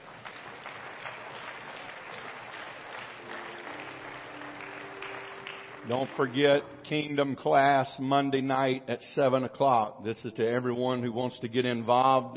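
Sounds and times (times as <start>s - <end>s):
audience applause: 0.0s - 6.7s
speech: 5.8s - 12.3s.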